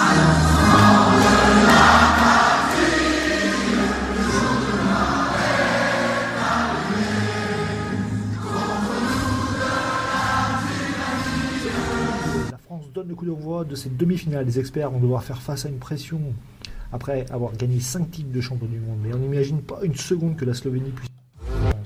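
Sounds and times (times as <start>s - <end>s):
stadium crowd singing a national anthem before a football match: 0.0s - 12.5s
speech: 13.2s - 21.2s
steady low rumble: 16.7s - 18.0s.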